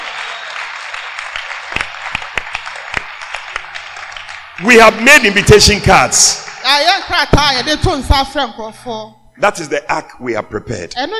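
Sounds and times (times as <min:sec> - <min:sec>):
scattered audience clapping: 0:00.0 - 0:07.6
speech: 0:04.6 - 0:11.1.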